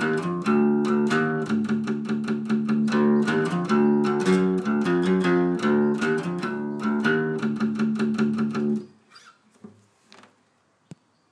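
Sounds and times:
acoustic hardcore music: 0.0s - 8.9s.

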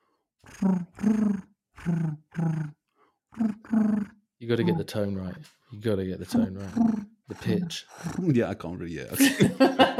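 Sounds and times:
person imitating a pigeon cooing: 0.5s - 2.8s, 3.4s - 4.9s, 6.3s - 8.4s
speech: 0.6s - 2.8s, 3.4s - 9.9s
laughter: 9.1s - 9.9s.

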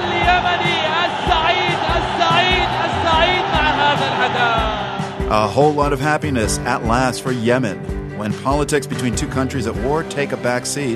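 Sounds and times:
stadium crowd cheering wildly: 0.0s - 5.7s
speech: 5.3s - 10.9s.

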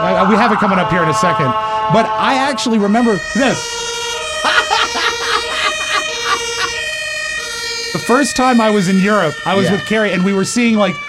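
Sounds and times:
speech: 0.0s - 3.9s, 8.0s - 11.0s
European-style police siren: 0.0s - 11.0s
laughter: 4.4s - 6.9s, 9.6s - 9.8s.

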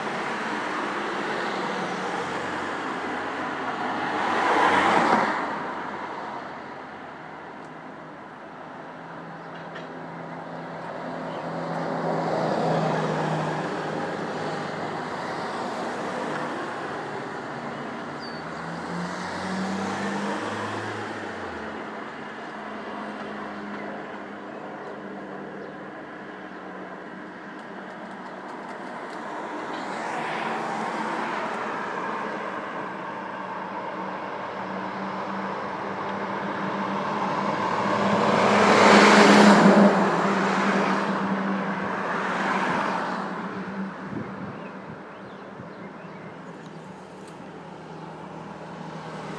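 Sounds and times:
bus stop noise: 0.0s - 49.3s.

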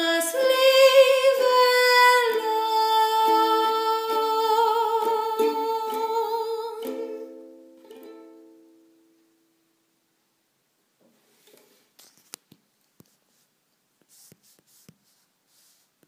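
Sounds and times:
person singing a sonnet: 0.0s - 8.4s.

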